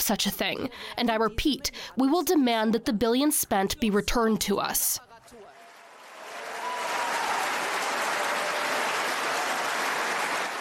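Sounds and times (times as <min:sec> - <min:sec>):
speech: 0:00.0 - 0:05.1
audience applause: 0:05.4 - 0:10.6.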